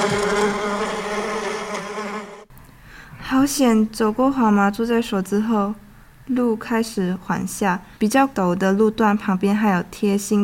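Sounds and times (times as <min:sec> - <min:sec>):
speech: 0:00.0 - 0:00.7, 0:03.3 - 0:10.4
bees buzzing: 0:00.0 - 0:02.5.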